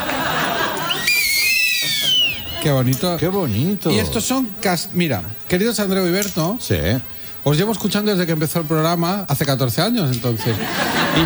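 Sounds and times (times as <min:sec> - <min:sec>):
laughter: 0:00.0 - 0:04.4, 0:10.3 - 0:11.2
shrill whistle blown in sustained blast: 0:00.8 - 0:02.5
speech: 0:02.6 - 0:11.2.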